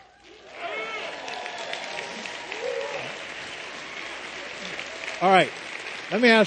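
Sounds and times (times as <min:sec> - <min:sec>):
crowd applauding: 0:00.0 - 0:06.4
Marines in an audience shouting their Marine Corps call: 0:00.4 - 0:05.0
speech: 0:05.2 - 0:06.4.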